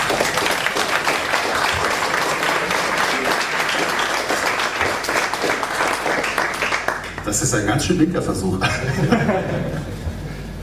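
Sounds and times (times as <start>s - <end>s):
crowd applause: 0.0s - 7.7s
laughter: 2.1s - 3.8s, 8.5s - 10.5s
speech: 7.3s - 10.0s.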